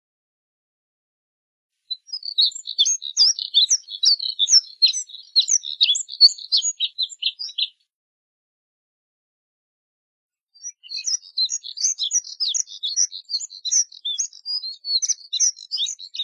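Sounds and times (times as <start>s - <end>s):
Moussier's redstart twittering warble: 1.9s - 7.7s, 10.6s - 16.2s.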